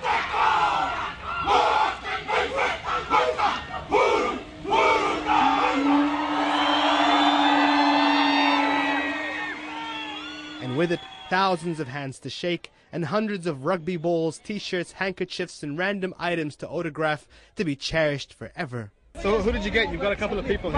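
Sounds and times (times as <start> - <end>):
large crowd cheering a rugby team arriving at Victoria Park: 0.0 - 12.2
speech: 10.8 - 20.7.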